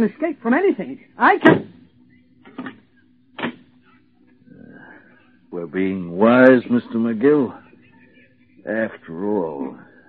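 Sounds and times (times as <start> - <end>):
speech: 0.0 - 1.8, 5.5 - 7.6, 8.7 - 9.9
door being closed: 3.4 - 3.7.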